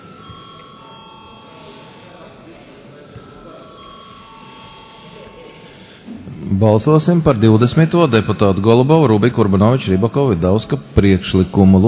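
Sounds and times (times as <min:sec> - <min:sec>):
parliament voting bell ringing: 0:00.0 - 0:06.0
low murmur: 0:00.0 - 0:11.8
speech: 0:06.5 - 0:11.8.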